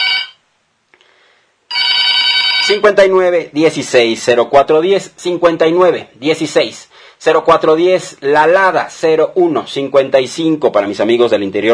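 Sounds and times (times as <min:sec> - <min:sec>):
telephone ringing in the studio booth: 0:00.0 - 0:00.4, 0:01.7 - 0:03.0
speech: 0:02.7 - 0:11.7.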